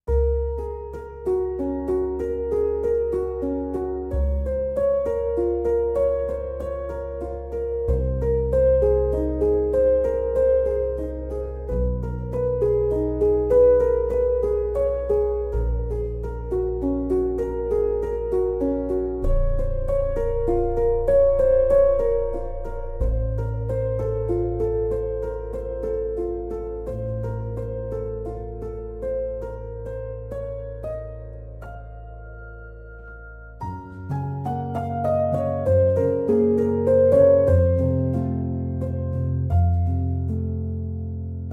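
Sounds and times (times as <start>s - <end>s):
solo piano: 0.0s - 41.5s.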